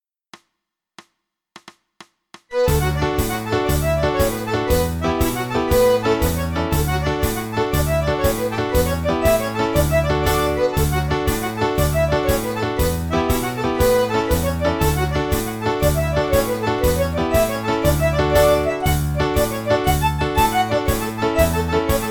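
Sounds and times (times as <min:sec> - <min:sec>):
traditional Irish jigs in D: 0:02.5 - 0:22.0.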